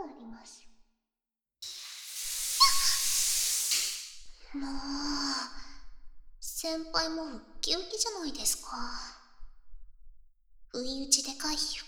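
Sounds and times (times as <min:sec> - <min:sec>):
speech: 0:00.4 - 0:00.6, 0:04.6 - 0:05.1, 0:06.6 - 0:09.2, 0:10.8 - 0:11.8
bath bubble jets spraying water: 0:01.6 - 0:04.2
squeaky whistle: 0:02.4 - 0:03.5.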